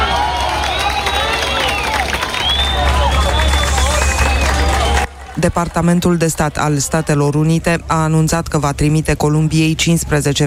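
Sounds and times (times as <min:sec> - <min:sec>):
crowd applause at rescue: 0:00.0 - 0:07.2
speech: 0:05.4 - 0:10.4.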